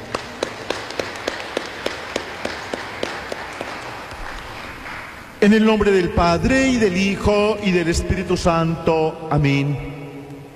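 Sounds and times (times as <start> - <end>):
audience applause: 0.0 - 5.2
speech: 5.4 - 9.9.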